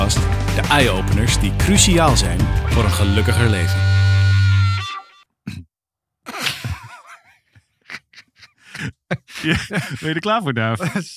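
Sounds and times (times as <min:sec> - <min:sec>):
speech: 0:00.1 - 0:04.0, 0:09.4 - 0:11.1
throat clearing, a half cough: 0:05.4 - 0:05.7
laughter: 0:06.3 - 0:11.1.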